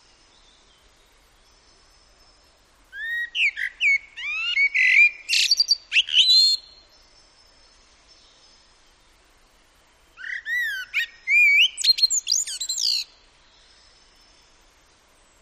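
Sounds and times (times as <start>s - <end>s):
common blackbird singing: 2.9s - 6.9s, 10.2s - 14.5s.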